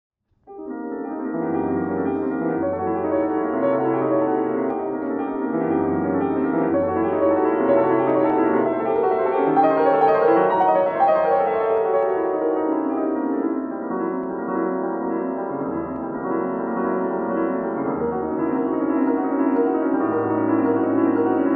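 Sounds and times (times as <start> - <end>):
piano piece: 0.3 - 21.5.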